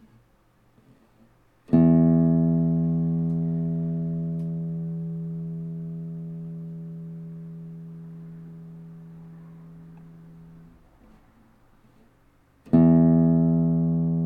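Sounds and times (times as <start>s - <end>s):
Spanish guitar sixth string E plucked for tuning: 1.7s - 10.7s, 12.7s - 14.2s.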